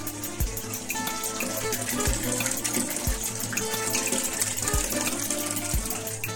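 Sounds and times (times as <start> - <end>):
running water: 0.0 - 6.3.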